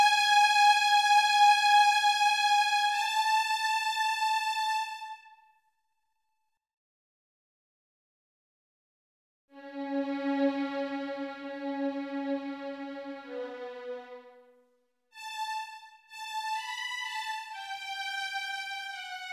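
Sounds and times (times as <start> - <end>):
violin piece for children: 0.0 - 5.4, 9.6 - 14.5, 15.2 - 19.3.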